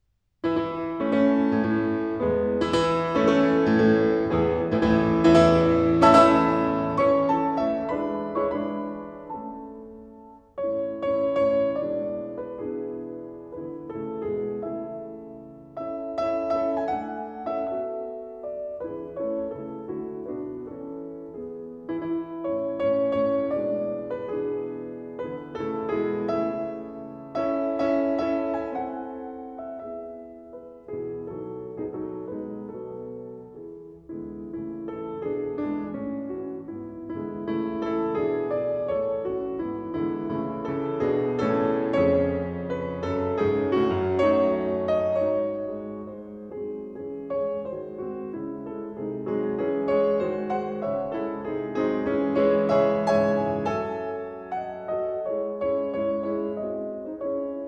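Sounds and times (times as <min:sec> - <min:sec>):
piano piece in A major: 0:00.0 - 0:57.6.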